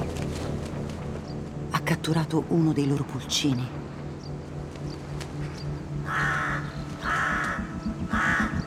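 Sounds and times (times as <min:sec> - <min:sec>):
low rumble of wind or ambient noise: 0:00.0 - 0:08.6
speech: 0:01.9 - 0:03.9
crows cawing: 0:06.0 - 0:08.6.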